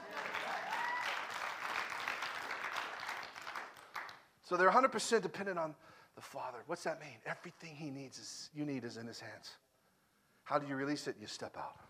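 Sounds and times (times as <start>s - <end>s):
audience clapping: 0.0s - 4.4s
speech: 4.5s - 9.6s, 10.5s - 11.8s.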